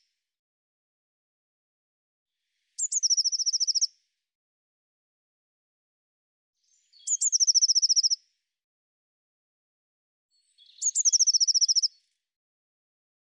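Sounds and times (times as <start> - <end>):
Eurasian blue tit song with ringing trill: 2.6 - 3.9, 6.6 - 8.2, 10.3 - 12.0.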